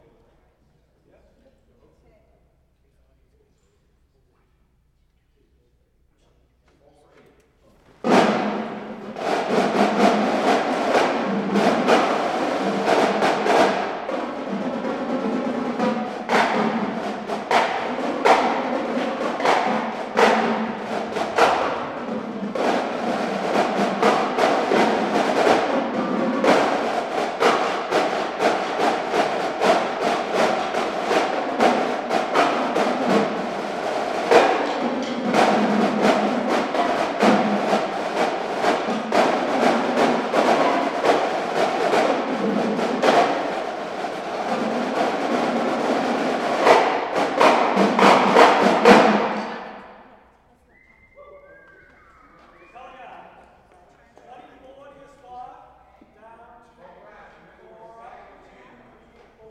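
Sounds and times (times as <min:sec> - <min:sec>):
drum solo: 0:08.0 - 0:49.9.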